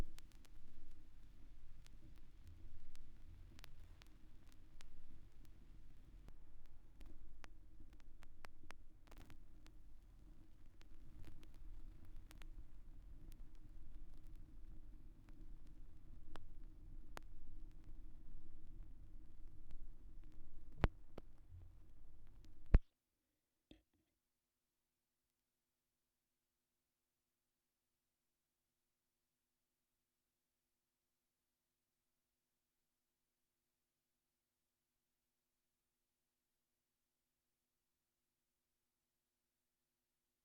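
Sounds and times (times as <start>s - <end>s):
vinyl record noise: 0.0s - 22.8s.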